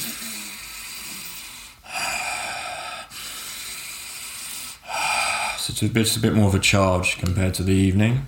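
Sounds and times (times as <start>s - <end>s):
heavy breathing in a breathwork exercise: 0.0s - 6.2s
speech: 5.7s - 8.2s.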